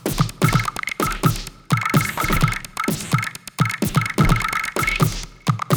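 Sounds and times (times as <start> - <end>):
robotic sound effects: 0.2 - 5.6.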